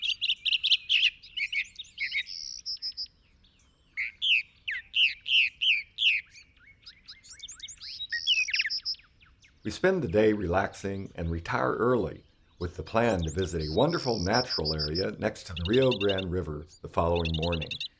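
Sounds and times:
northern mockingbird singing: 0:00.0 - 0:17.9
speech: 0:09.7 - 0:17.8.

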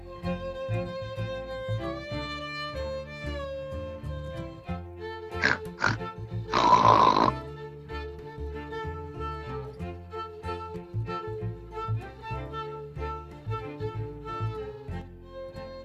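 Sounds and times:
gentle tonal music: 0:00.0 - 0:15.8
pigs grunting: 0:05.4 - 0:07.4.

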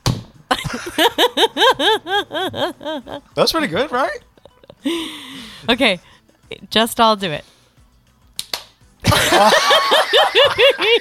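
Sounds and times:
rhythmic bursts of laughter: 0:00.5 - 0:03.2, 0:04.4 - 0:05.0, 0:09.0 - 0:10.9
speech: 0:00.7 - 0:07.5, 0:09.1 - 0:10.9
hand clap used as sync marker: 0:08.3 - 0:08.9.

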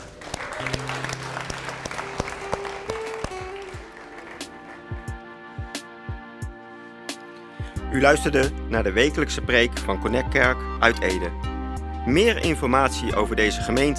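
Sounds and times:
audience applause: 0:00.0 - 0:05.3
speech: 0:07.9 - 0:13.9.

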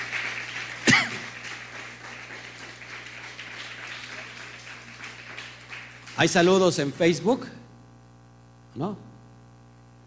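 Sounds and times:
audience applause: 0:00.0 - 0:07.2
speech: 0:06.2 - 0:07.6, 0:08.8 - 0:09.1.

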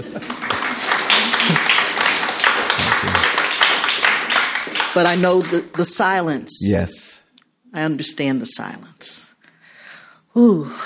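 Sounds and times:
audience clapping: 0:00.0 - 0:06.8
speech: 0:05.0 - 0:07.0, 0:07.7 - 0:09.3, 0:10.4 - 0:10.8.

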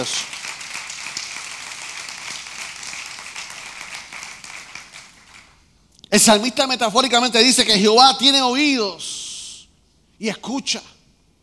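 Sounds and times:
speech: 0:00.0 - 0:00.3, 0:06.1 - 0:09.1, 0:10.2 - 0:10.9
audience applauding: 0:00.0 - 0:06.4.

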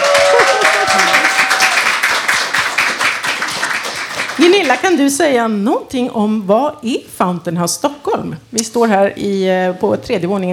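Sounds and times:
audience applause: 0:00.0 - 0:04.8
speech: 0:04.4 - 0:10.5.

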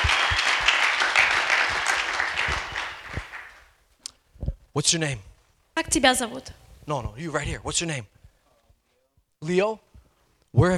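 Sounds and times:
audience clapping: 0:00.0 - 0:03.8
speech: 0:04.8 - 0:08.2, 0:09.4 - 0:09.9, 0:10.5 - 0:10.7.

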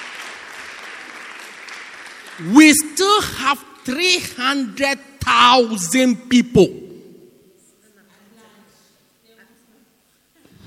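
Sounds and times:
crowd applauding: 0:00.0 - 0:03.9
speech: 0:02.4 - 0:06.8.

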